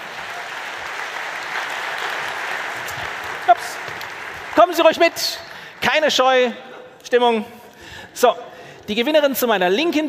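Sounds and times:
audience applause: 0.0 - 5.9
speech: 4.6 - 7.6, 8.2 - 10.0.

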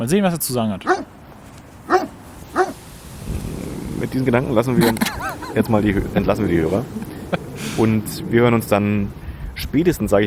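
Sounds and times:
speech: 0.0 - 1.1, 4.0 - 10.2
dog barking: 0.8 - 1.2, 1.8 - 2.8
laughter: 3.8 - 8.1.

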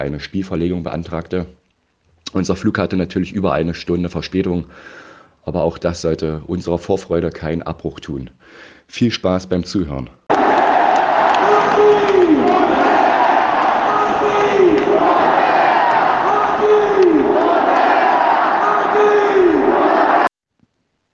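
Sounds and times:
speech: 0.0 - 1.6, 2.3 - 10.2
stadium crowd cheering a goal: 10.3 - 20.3.

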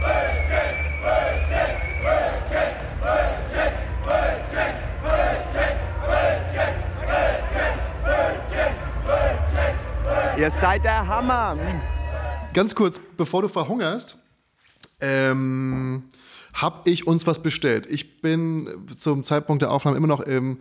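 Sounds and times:
large festival crowd chanting in unison: 0.0 - 12.4
speech: 10.4 - 14.2, 15.0 - 20.5.

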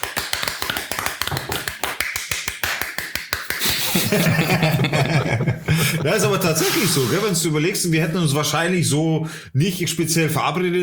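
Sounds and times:
applause from a few people: 0.0 - 4.0
laughter: 3.6 - 7.4
speech: 4.1 - 10.8.

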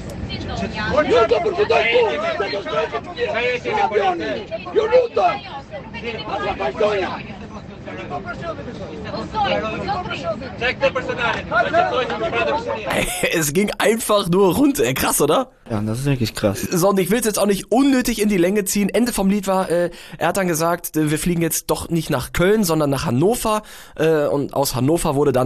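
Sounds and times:
passengers shouting in an airplane cabin: 0.0 - 13.5
speech: 0.3 - 25.4
laughter: 11.7 - 14.0.

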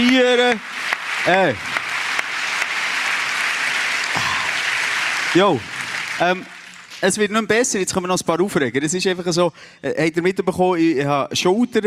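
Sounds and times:
speech: 0.0 - 1.7, 5.3 - 11.8
applause: 0.0 - 7.9.

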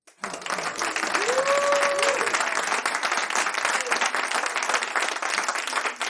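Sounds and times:
live audience applause: 0.0 - 6.0
whistle or cheer: 1.1 - 2.4.

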